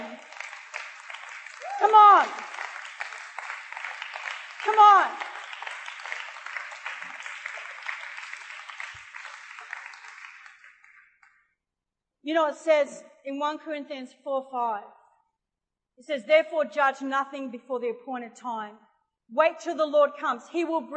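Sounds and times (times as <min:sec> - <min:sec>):
audience clapping hands: 0:00.0 - 0:11.2
speech: 0:01.8 - 0:02.6, 0:04.7 - 0:05.3, 0:12.3 - 0:15.0, 0:16.0 - 0:20.9.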